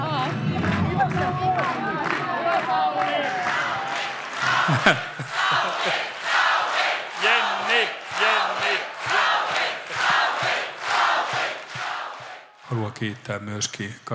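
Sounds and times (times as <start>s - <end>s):
election night supporters cheering and shouting: 0.0s - 13.0s
scattered applause: 0.0s - 13.6s
laughter: 4.4s - 10.6s
speech: 4.7s - 6.0s, 13.0s - 14.1s.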